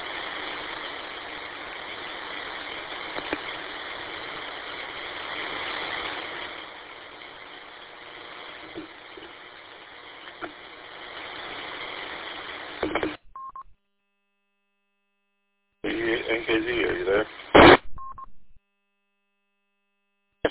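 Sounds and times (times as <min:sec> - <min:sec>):
radio repeater transmitting: 0:00.0 - 0:13.6, 0:15.8 - 0:18.6.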